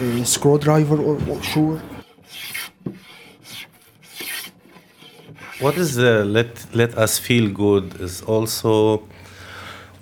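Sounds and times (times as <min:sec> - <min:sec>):
dull scrape: 0:00.0 - 0:06.2
speech: 0:00.2 - 0:02.6, 0:05.6 - 0:09.2
file or rasp smoothing wood in a small workshop: 0:01.3 - 0:06.0.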